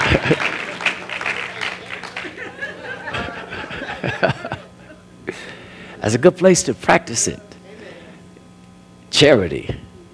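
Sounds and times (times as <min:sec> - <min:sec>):
audience clapping: 0:00.0 - 0:03.5
laughter: 0:00.0 - 0:05.6
speech: 0:06.0 - 0:07.5, 0:09.2 - 0:09.8.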